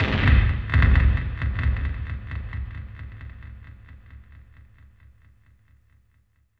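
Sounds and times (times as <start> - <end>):
nasty bass drums: 0.0 - 4.8.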